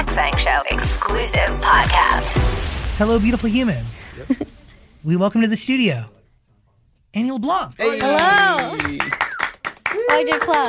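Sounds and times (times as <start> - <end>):
speech: 0.2 - 6.2, 7.1 - 9.2, 10.1 - 10.6
people clapping: 7.8 - 10.6.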